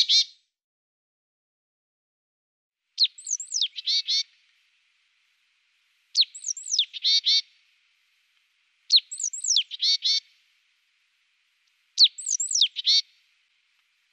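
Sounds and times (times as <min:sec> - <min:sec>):
Eurasian blue tit calls: 0:00.0 - 0:00.3, 0:03.0 - 0:04.4, 0:06.1 - 0:07.6, 0:08.9 - 0:10.4, 0:11.7 - 0:13.3.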